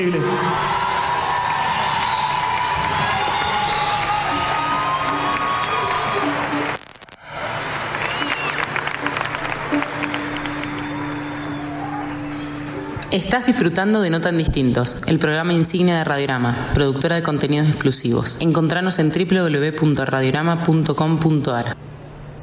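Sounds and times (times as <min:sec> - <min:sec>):
speech: 0:00.0 - 0:00.8, 0:13.2 - 0:21.8
audience applause and cheering: 0:00.0 - 0:13.1.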